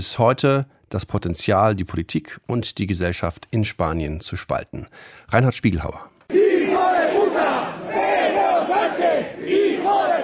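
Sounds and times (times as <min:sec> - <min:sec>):
speech: 0:00.0 - 0:07.8
hundreds of protesters shouting insults near a cemetery: 0:06.3 - 0:10.2.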